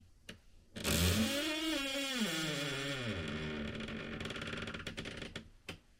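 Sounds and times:
squeaky door hinge: 0:00.8 - 0:04.8.

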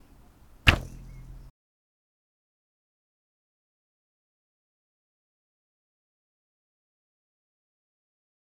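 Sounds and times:
bowed string: 0:00.7 - 0:01.5.

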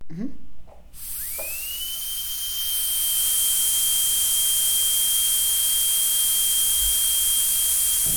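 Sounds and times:
dentist drill: 0:01.0 - 0:08.1.

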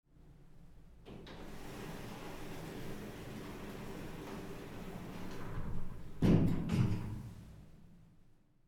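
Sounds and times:
elevator door closing: 0:01.1 - 0:07.4.

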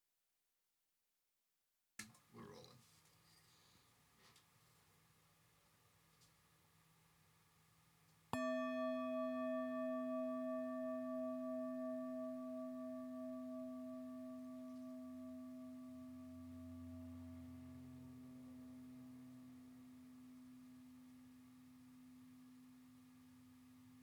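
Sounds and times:
singing bowl: 0:08.3 - 0:24.0.

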